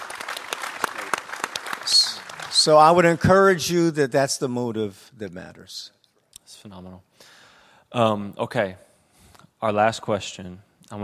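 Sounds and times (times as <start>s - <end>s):
audience clapping: 0.0s - 3.6s
speech: 2.6s - 6.0s, 6.6s - 8.9s, 9.6s - 11.0s.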